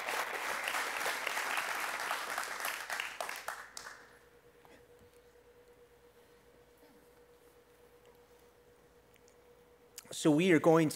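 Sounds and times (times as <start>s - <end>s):
crowd applauding warmly: 0.0s - 4.2s
speech: 10.1s - 10.9s.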